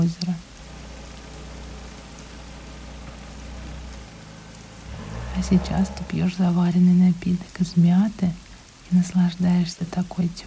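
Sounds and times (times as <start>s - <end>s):
speech: 0.0s - 0.5s, 5.4s - 10.4s
steady rain at a country house: 0.0s - 10.4s
low rumble: 0.5s - 7.6s.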